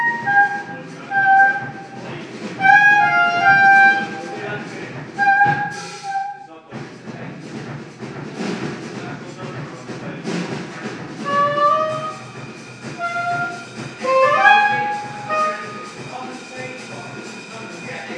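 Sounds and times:
soundcheck: 0:00.0 - 0:06.5, 0:11.2 - 0:16.1.

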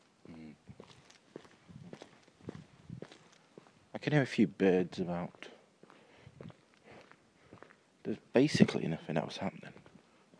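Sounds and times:
footsteps walking along a street: 0:00.8 - 0:03.8, 0:05.4 - 0:07.8
speech: 0:04.0 - 0:05.5, 0:08.1 - 0:09.8.

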